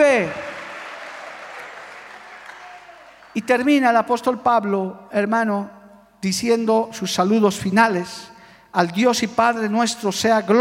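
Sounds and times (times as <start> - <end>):
crowd applause: 0.0 - 3.4
speech: 0.2 - 0.4, 3.4 - 10.5.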